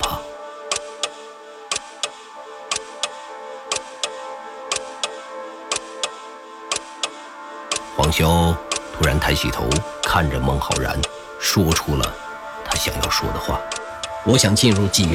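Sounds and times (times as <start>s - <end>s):
living room clock ticking: 0.0s - 15.1s
speech: 8.1s - 15.1s.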